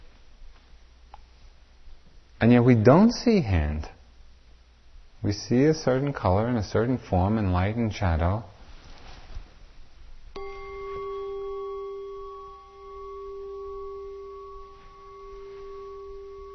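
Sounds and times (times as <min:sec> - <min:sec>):
speech: 0:02.4 - 0:04.0, 0:05.2 - 0:08.5
meditation bell ringing: 0:10.4 - 0:16.5.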